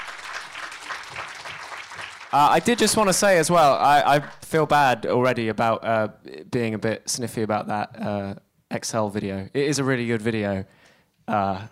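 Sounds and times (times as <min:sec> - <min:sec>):
audience clapping: 0:00.0 - 0:05.0
speech: 0:02.3 - 0:11.7.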